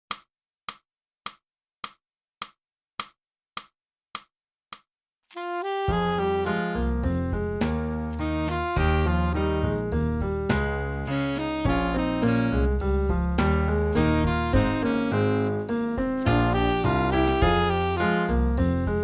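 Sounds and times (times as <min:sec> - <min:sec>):
saxophone: 0:05.3 - 0:19.0.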